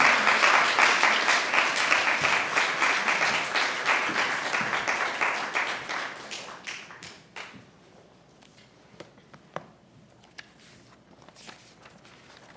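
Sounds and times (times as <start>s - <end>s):
crowd applause: 0.0s - 7.6s.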